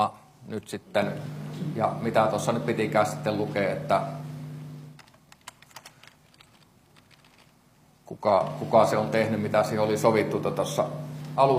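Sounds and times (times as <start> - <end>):
speech: 0.0 - 4.2, 8.2 - 11.5
computer keyboard taps while copy-pasting content: 5.0 - 7.5.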